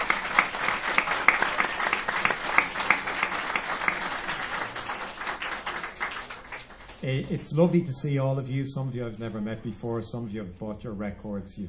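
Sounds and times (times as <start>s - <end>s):
audience applause: 0.0s - 7.0s
speech: 7.0s - 11.6s.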